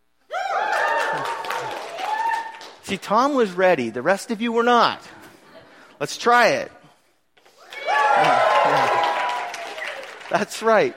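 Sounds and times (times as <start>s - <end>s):
audience cheering and whooping: 0.3s - 2.8s, 7.6s - 10.4s
applause: 0.6s - 3.0s, 7.7s - 10.9s
speech: 2.9s - 5.2s, 6.0s - 6.8s, 10.3s - 10.9s.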